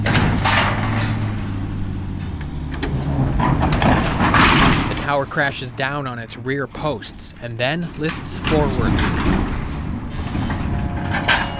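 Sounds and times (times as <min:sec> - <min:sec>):
tractor engines straining under load: 0:00.0 - 0:11.5
speech: 0:05.1 - 0:09.4.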